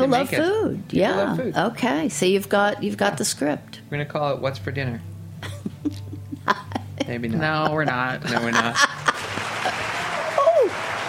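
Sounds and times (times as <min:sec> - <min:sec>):
speech: 0:00.0 - 0:05.1, 0:05.8 - 0:09.0
laughter: 0:05.4 - 0:11.0
people clapping: 0:08.3 - 0:11.0.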